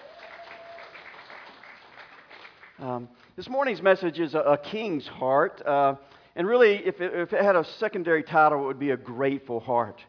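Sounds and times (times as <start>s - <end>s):
audience clapping: 0.0s - 3.3s
speech: 2.8s - 10.0s.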